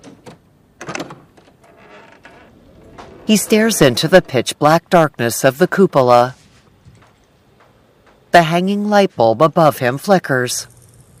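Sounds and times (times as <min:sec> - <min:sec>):
doorknob twisting: 0:00.0 - 0:03.2
door pushed open: 0:00.0 - 0:04.4
speech: 0:03.3 - 0:06.4, 0:08.4 - 0:10.8.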